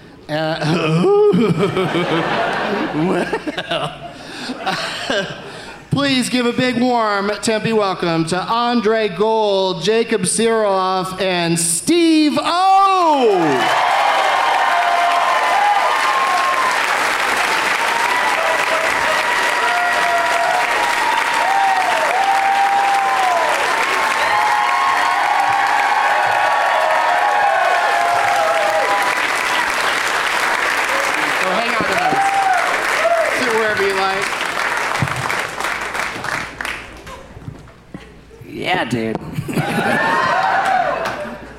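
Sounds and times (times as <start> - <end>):
speech: 0.3 - 13.9
laughter: 0.6 - 5.6, 18.4 - 19.3, 39.3 - 41.5
audience applause and cheering: 13.1 - 37.4, 39.6 - 41.5.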